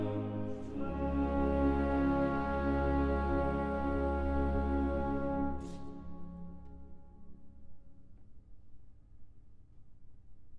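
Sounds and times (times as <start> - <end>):
choir singing: 0.0 - 6.8.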